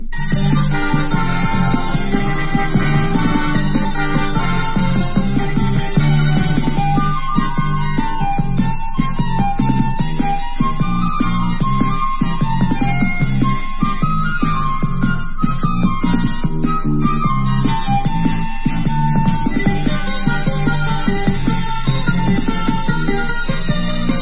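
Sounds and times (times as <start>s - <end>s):
instrumental hora music: 0.0s - 24.2s.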